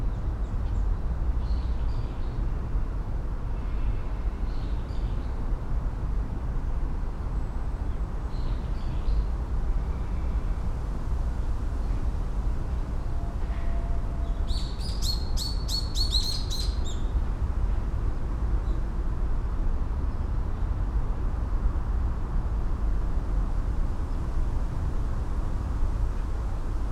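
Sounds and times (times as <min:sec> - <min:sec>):
steady low rumble of traffic: 0:00.0 - 0:26.8
bird chirping: 0:14.3 - 0:17.1.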